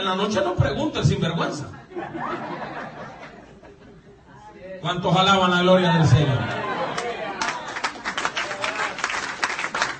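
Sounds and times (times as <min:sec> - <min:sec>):
speech: 0:00.1 - 0:02.9, 0:04.8 - 0:06.6
laughter: 0:01.8 - 0:04.2, 0:06.4 - 0:08.0
audience applause: 0:06.9 - 0:09.9.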